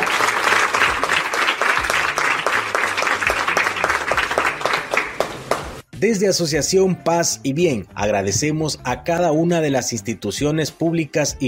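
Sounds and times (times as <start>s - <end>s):
audience applause: 0.0s - 5.8s
speech: 6.0s - 11.4s.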